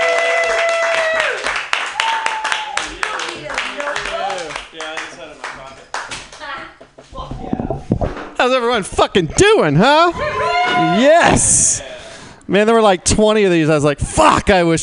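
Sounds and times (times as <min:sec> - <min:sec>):
cheering voices and whoops: 0:00.0 - 0:03.2, 0:10.2 - 0:11.4
audience clapping and applauding: 0:00.0 - 0:06.6
speech: 0:08.4 - 0:11.9, 0:12.5 - 0:14.8.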